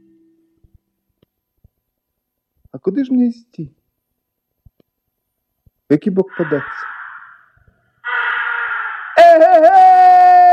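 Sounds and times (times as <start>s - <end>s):
speech: 2.8s - 3.8s, 5.9s - 6.9s
crow cawing: 6.2s - 9.7s.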